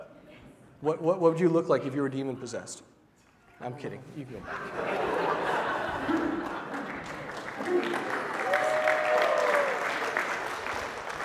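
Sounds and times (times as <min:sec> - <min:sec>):
speech: 0:00.8 - 0:03.0, 0:03.6 - 0:06.4, 0:07.6 - 0:08.2
laughter: 0:04.4 - 0:08.4
audience clapping: 0:05.4 - 0:11.2.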